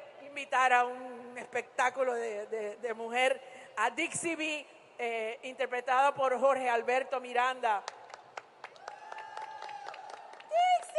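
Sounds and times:
speech: 0:00.4 - 0:07.9
audience clapping: 0:07.9 - 0:10.9
whooping: 0:08.8 - 0:10.9.

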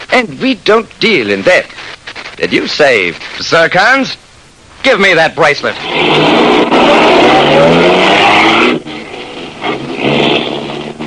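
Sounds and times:
speech: 0:00.1 - 0:01.8, 0:02.4 - 0:04.2, 0:04.8 - 0:08.2
car engine roaring: 0:05.7 - 0:11.0
tires squealing and skidding: 0:05.8 - 0:11.0.

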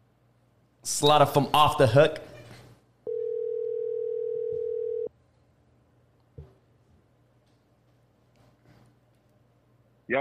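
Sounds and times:
speech: 0:00.8 - 0:02.3
phone ringback tone: 0:03.1 - 0:05.1.

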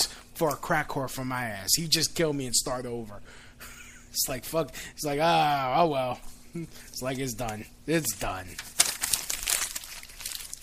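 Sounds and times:
speech: 0:00.4 - 0:08.8
papers being crumpled up: 0:08.0 - 0:10.6.

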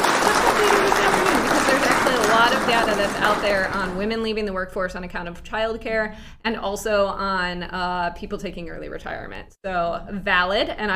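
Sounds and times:
crowd clapping: 0:00.0 - 0:04.1
speech: 0:02.7 - 0:10.9.

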